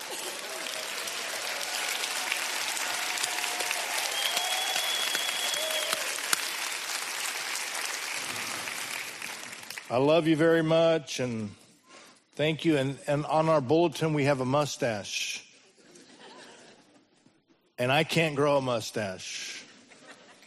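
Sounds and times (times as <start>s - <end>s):
women clapping: 0.0s - 9.9s
speech: 9.9s - 11.6s, 12.4s - 15.3s, 17.8s - 19.5s
laughter: 15.7s - 17.2s, 19.6s - 20.4s.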